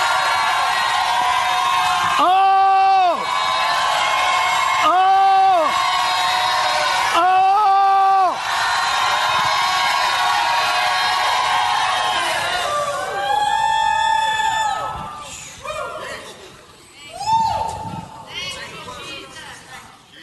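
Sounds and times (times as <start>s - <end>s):
audience shouting loudly in unison: 0.0s - 14.9s
crowd noise and cheering: 0.0s - 15.4s.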